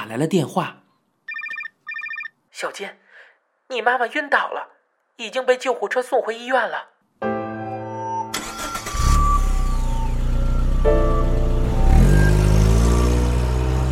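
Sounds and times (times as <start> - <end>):
speech: 0.1 - 0.8, 2.6 - 3.0, 3.7 - 7.3
car engine cranking and catching: 8.3 - 13.9.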